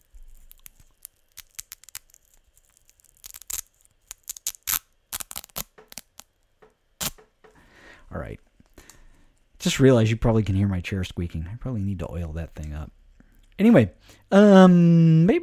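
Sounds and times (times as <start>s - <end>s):
velcro being pulled apart: 0.0s - 6.4s, 7.0s - 7.2s
speech: 8.1s - 8.5s, 9.6s - 13.0s, 13.6s - 15.4s.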